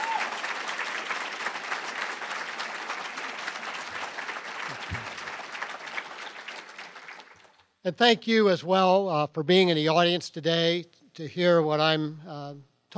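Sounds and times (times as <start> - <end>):
audience applause: 0.0 - 7.6
speech: 7.8 - 12.9.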